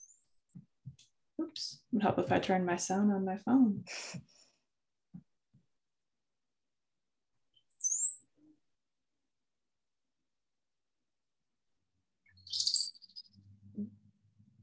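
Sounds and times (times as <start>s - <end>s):
speech: 1.6s - 4.3s
brown-headed cowbird song: 7.5s - 8.5s, 12.2s - 13.6s.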